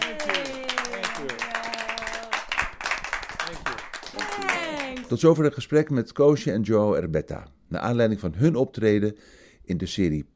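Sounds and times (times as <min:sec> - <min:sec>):
audience applause: 0:00.0 - 0:05.2
speech: 0:05.0 - 0:10.3.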